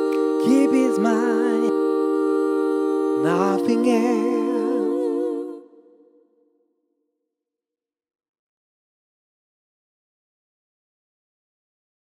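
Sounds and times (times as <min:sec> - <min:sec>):
a cappella gospel singing: 0:00.0 - 0:06.2.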